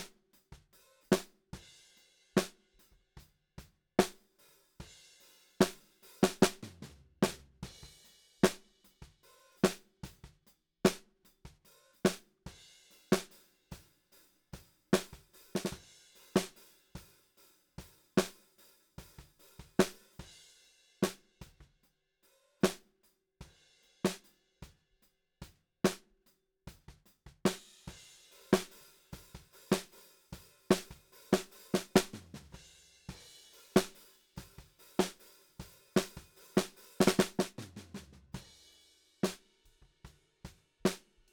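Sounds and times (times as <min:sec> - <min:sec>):
snare drum: 0:00.0 - 0:00.2, 0:04.0 - 0:04.2, 0:05.6 - 0:12.3, 0:13.1 - 0:13.3, 0:15.0 - 0:16.6, 0:18.2 - 0:20.3, 0:26.8 - 0:38.5, 0:39.2 - 0:39.5, 0:40.9 - 0:41.1.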